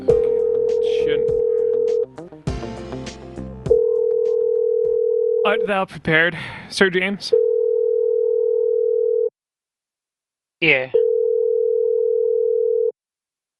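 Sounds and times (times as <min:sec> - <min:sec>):
telephone dial tone as a call is placed: 0:00.1 - 0:02.1, 0:03.7 - 0:05.5, 0:07.3 - 0:09.3, 0:11.0 - 0:12.9
speech: 0:05.5 - 0:07.4, 0:10.6 - 0:11.0.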